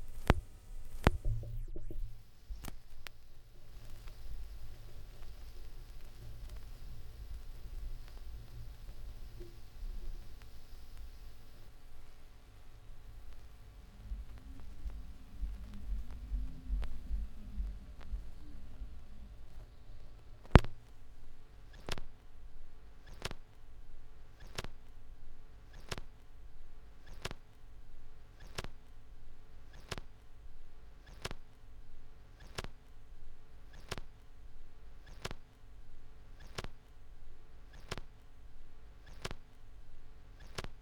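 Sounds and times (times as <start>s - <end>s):
vinyl record noise: 0.0s - 40.8s.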